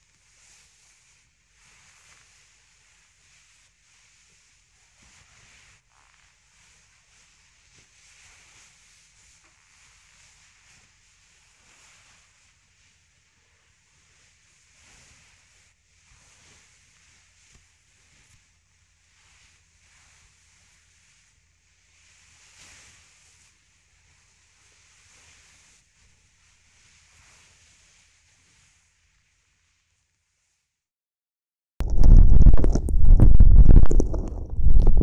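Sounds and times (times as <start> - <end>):
licking deep in the right ear: 31.8 - 35.0.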